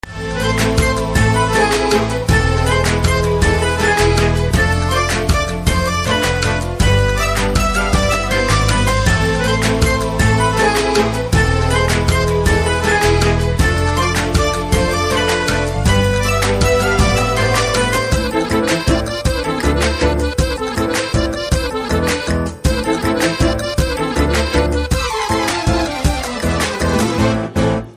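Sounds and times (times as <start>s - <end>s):
background music ringtone: 0.1s - 27.9s.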